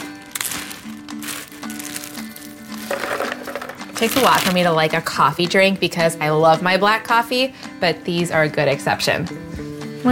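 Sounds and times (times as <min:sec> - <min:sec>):
ice cubes tumbling and clattering into a blender jar: 0:00.4 - 0:04.6
speech: 0:04.0 - 0:10.1.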